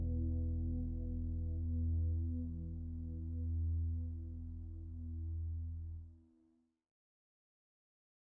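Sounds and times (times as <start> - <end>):
bass solo: 0.0 - 6.0.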